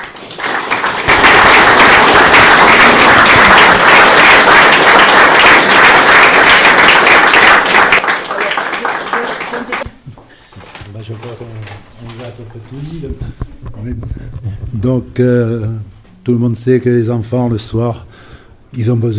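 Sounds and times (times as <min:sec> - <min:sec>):
audience applause: 0:00.0 - 0:09.8
speech: 0:12.6 - 0:13.2, 0:13.8 - 0:18.1, 0:18.7 - 0:19.1.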